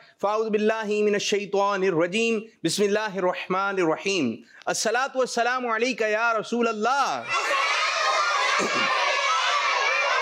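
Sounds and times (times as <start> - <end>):
speech: 0.2 - 7.8, 8.6 - 9.0
children chanting a devotional recitation: 7.2 - 10.1.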